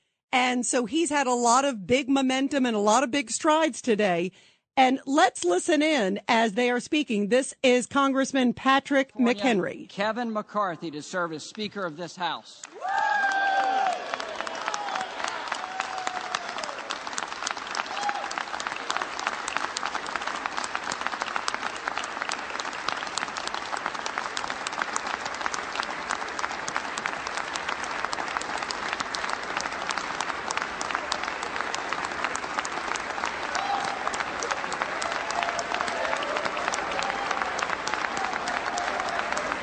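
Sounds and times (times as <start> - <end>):
speech: 0.3 - 13.2
crowd applauding in the House chamber: 12.6 - 39.6
faint cheers: 12.7 - 17.0, 17.8 - 19.1, 33.4 - 39.6.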